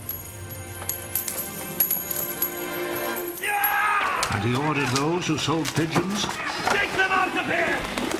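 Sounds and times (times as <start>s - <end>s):
metal coins clattering onto a hard floor: 0.0s - 3.9s
speech: 4.3s - 8.1s.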